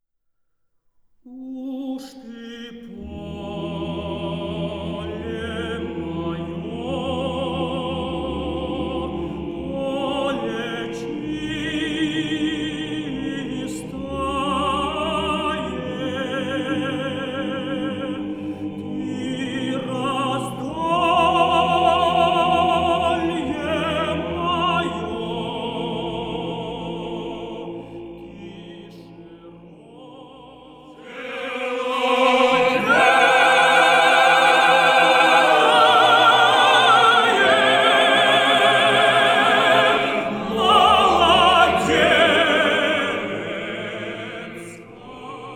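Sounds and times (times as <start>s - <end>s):
choir singing: 1.3s - 45.5s.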